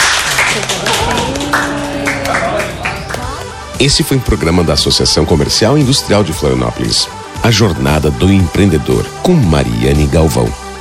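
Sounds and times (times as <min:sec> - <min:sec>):
applause: 0:00.0 - 0:03.6
speech: 0:03.8 - 0:10.6.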